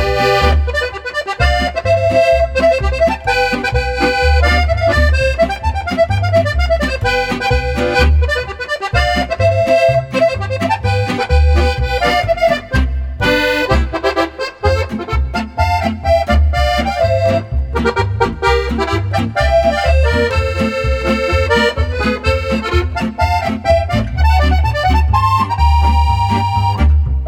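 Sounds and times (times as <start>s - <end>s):
polka band playing a polka: 0.0s - 27.2s.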